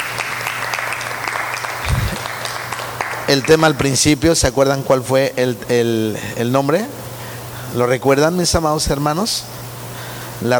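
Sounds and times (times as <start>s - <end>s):
audience applauding: 0.0s - 3.9s
speech: 3.3s - 7.0s, 7.7s - 9.6s, 10.4s - 10.5s.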